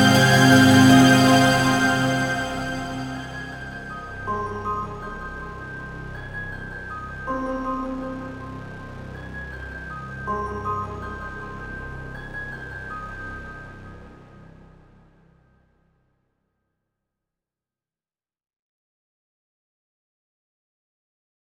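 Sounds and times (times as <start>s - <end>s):
music: 0.0s - 15.7s.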